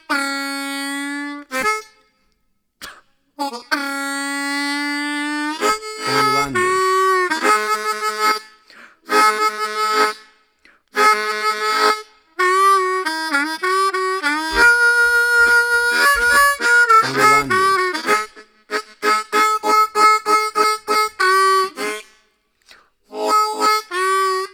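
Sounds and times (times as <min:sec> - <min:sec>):
blues harmonica solo in a bar: 0:03.4 - 0:10.3, 0:10.9 - 0:22.2, 0:23.1 - 0:24.5.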